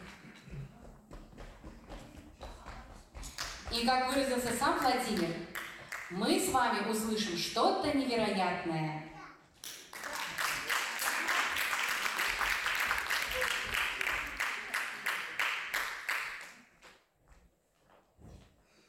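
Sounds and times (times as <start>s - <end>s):
crowd applauding: 0.0s - 0.7s, 9.6s - 16.6s
speech: 3.7s - 9.1s.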